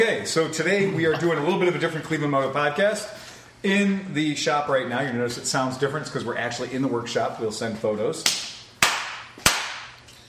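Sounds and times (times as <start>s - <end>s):
speech: 0.0s - 8.4s
laughter: 0.6s - 2.3s
hand clap: 8.2s - 10.0s.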